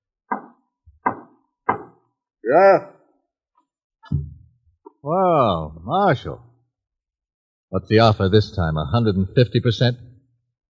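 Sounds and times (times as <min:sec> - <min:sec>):
knocking on a door: 0:00.3 - 0:02.0
speech: 0:02.4 - 0:02.9, 0:05.0 - 0:06.5, 0:07.7 - 0:10.1
faint low thud: 0:04.1 - 0:04.4.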